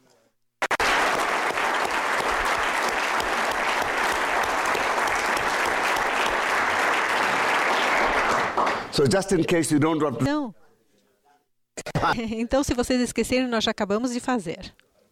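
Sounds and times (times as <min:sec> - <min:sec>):
audience applause: 0:00.6 - 0:09.0
speech: 0:09.0 - 0:10.6, 0:12.0 - 0:14.8.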